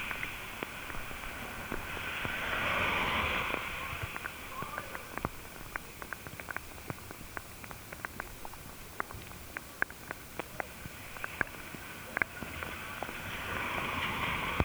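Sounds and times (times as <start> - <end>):
underwater hiss in a rain puddle via hydrophone: 0.0 - 7.1, 10.5 - 14.6
raindrops striking puddle water: 0.0 - 14.6.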